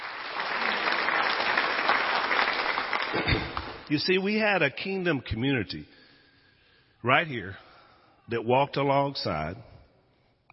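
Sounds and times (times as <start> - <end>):
church congregation applauding during a service: 0.0 - 4.0
speech: 3.1 - 6.0, 7.0 - 7.6, 8.3 - 9.7.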